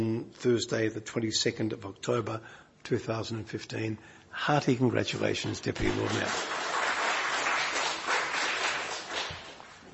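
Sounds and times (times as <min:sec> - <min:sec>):
speech: 0:00.0 - 0:06.6
lukewarm round of applause: 0:05.8 - 0:09.8.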